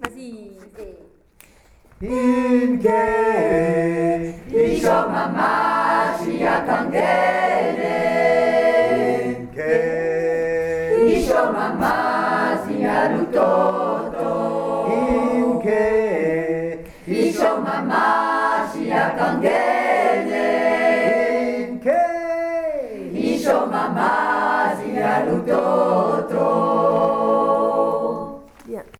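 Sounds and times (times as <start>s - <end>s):
three voices singing: 1.9s - 28.6s.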